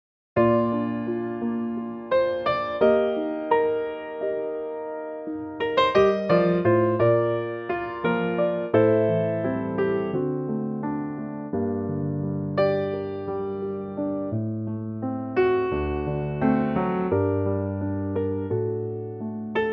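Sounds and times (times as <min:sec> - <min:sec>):
piano in B flat: 0:00.4 - 0:19.7.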